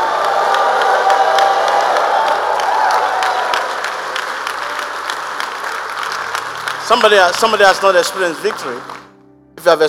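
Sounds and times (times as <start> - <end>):
church congregation whooping and shouting: 0.0 - 3.8
church congregation clapping: 0.0 - 9.2
speech: 6.9 - 9.0, 9.6 - 9.8.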